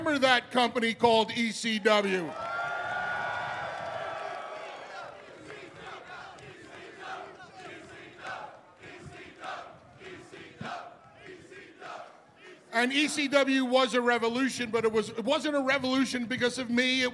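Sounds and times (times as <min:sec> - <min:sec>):
speech: 0:00.1 - 0:02.5, 0:12.8 - 0:17.1
large crowd cheering and whooping: 0:01.8 - 0:12.7
applause: 0:02.3 - 0:09.0.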